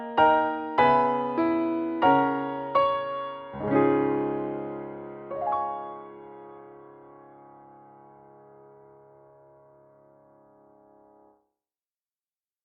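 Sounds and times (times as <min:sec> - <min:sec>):
musical accompaniment: 0:00.0 - 0:09.7.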